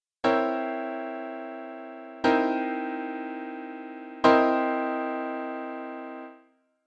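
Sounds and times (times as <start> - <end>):
musical chords: 0.3 - 6.4.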